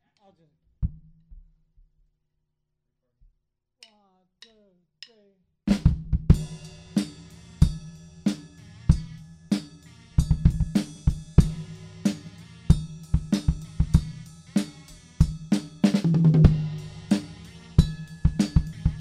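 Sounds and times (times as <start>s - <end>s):
music beat: 5.7s - 18.9s.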